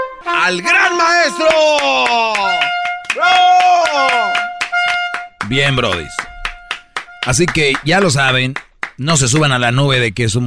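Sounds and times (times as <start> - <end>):
speech: 0.4 - 4.5, 5.5 - 6.3, 7.2 - 10.4
hand clapping: 1.4 - 9.6.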